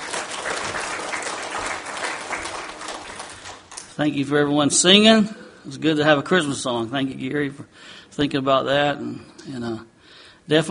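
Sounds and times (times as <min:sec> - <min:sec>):
audience at a Christmas gathering clapping: 0:00.0 - 0:04.0
speech: 0:04.0 - 0:09.9, 0:10.5 - 0:10.7.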